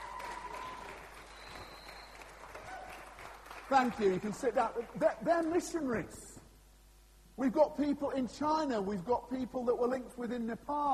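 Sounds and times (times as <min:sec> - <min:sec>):
audience round of applause: 0:00.0 - 0:05.0
speech: 0:03.7 - 0:06.4, 0:07.4 - 0:10.9.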